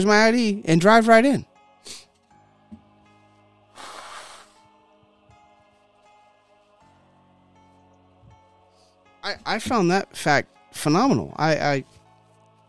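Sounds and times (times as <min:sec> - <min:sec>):
speech: 0:00.0 - 0:02.0, 0:09.3 - 0:12.0
person with cat allergies blowing their nose: 0:03.7 - 0:04.7.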